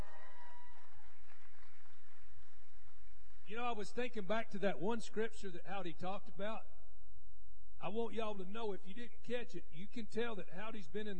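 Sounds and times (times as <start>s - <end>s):
crowd clapping and cheering: 0.0s - 3.6s
speech: 3.5s - 6.7s, 7.8s - 11.1s.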